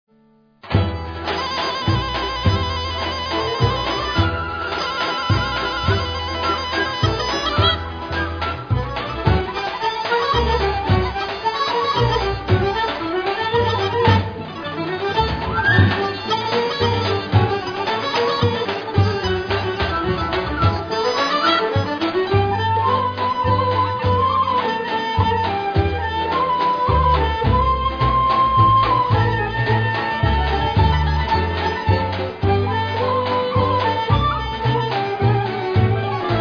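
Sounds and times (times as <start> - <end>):
ethnic Balkan melodies: 0.6 - 36.3.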